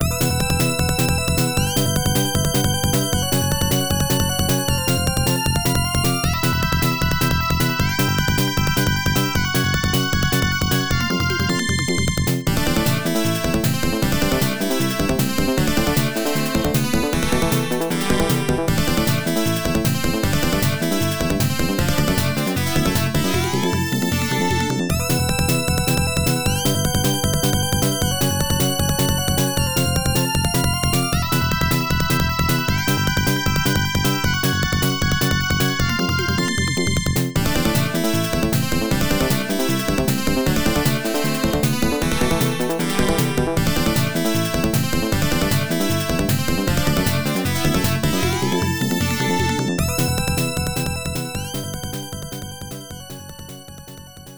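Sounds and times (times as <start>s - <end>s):
unused background music: 0.0s - 54.3s.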